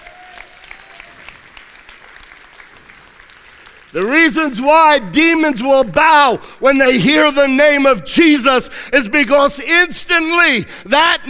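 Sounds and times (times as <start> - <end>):
audience clapping: 0.0 - 6.6
speech: 3.9 - 11.2.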